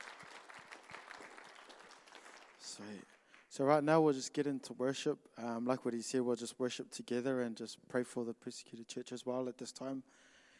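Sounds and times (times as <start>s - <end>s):
room full of people applauding: 0.0s - 3.6s
speech: 2.8s - 10.3s.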